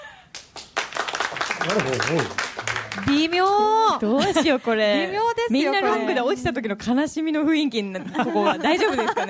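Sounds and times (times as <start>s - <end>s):
small audience clapping: 0.3s - 4.0s
speech: 1.7s - 9.2s
laughter: 8.0s - 9.2s.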